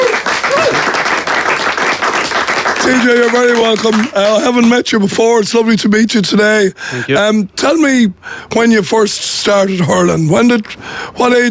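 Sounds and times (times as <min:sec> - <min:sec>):
audience applause for hurler TJ Reid: 0:00.0 - 0:04.2
speech: 0:02.9 - 0:11.4.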